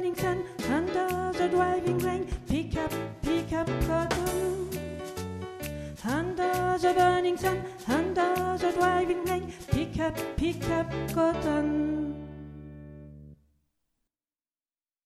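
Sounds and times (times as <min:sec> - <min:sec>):
soprano singing: 0:00.0 - 0:05.2, 0:06.0 - 0:12.7.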